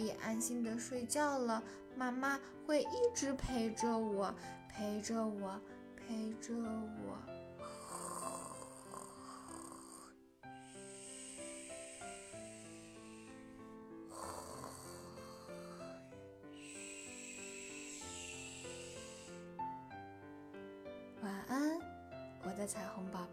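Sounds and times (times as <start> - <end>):
speech: 0.0 - 7.8, 22.7 - 23.1
snoring: 7.6 - 19.6.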